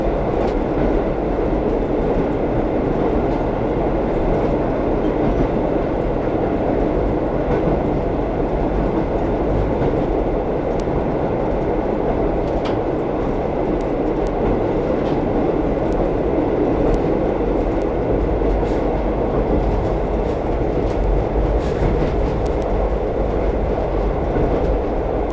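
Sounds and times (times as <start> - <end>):
train interior ambience: 0.0 - 25.3.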